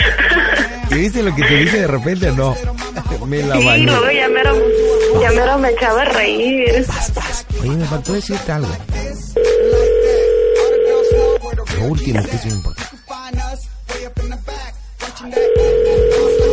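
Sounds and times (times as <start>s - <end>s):
laughter: 0.0s - 1.8s
speech: 1.0s - 8.9s, 11.6s - 12.8s
telephone ringback tone on a call: 3.6s - 5.9s, 9.4s - 11.4s, 15.4s - 16.5s.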